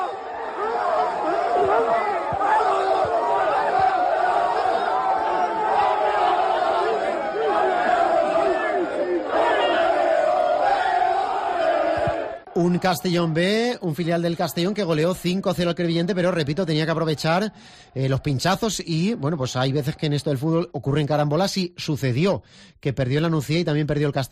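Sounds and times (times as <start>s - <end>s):
young players shouting championship celebration chants: 0.0s - 12.4s
speech: 12.8s - 24.3s.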